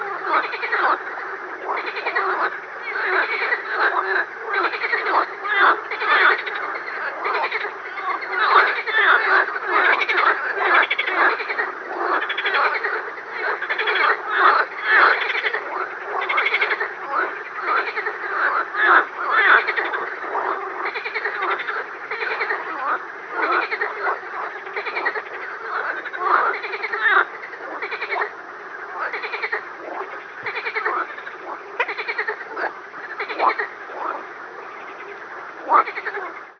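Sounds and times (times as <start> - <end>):
frogs croaking in a swamp: 0.0 - 36.5.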